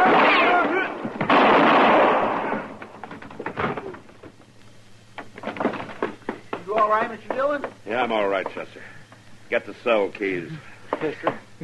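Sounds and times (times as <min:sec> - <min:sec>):
gunshot: 0:00.0 - 0:02.8
speech: 0:06.9 - 0:11.6.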